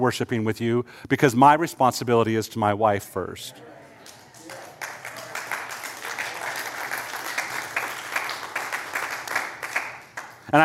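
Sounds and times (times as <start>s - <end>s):
speech: 0.0s - 3.8s
audience applause: 4.0s - 10.4s.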